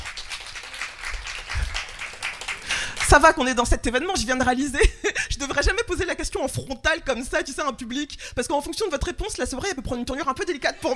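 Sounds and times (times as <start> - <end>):
audience applause as a show of hands at a public event: 0.0 - 3.1
speech: 3.1 - 10.9.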